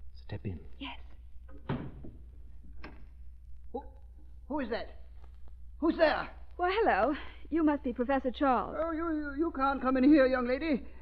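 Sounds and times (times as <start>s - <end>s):
speech: 0.3s - 1.1s, 4.5s - 5.0s, 5.8s - 11.0s
door closing: 1.5s - 3.2s.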